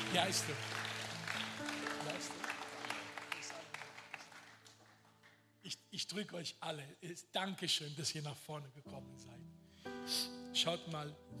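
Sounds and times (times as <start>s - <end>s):
audience applause: 0.0s - 5.4s
speech: 0.1s - 0.9s, 5.9s - 11.3s.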